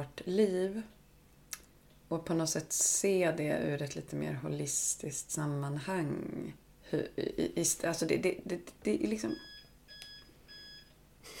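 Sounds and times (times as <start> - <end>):
speech: 0.0 - 1.0, 2.1 - 9.5
dishwasher beeping: 9.4 - 10.9.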